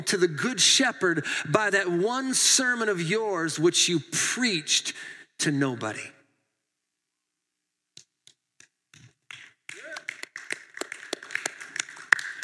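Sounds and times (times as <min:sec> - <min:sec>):
speech: 0:00.0 - 0:06.2
polite golf clap: 0:09.0 - 0:12.4.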